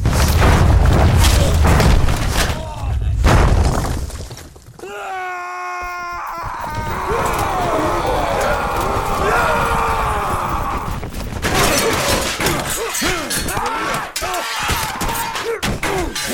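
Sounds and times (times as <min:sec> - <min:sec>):
battle sounds: 0:00.1 - 0:03.7, 0:04.8 - 0:16.3.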